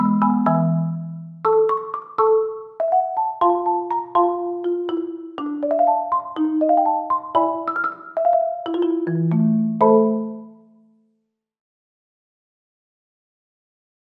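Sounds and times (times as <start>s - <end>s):
marimba: 0.0s - 10.7s.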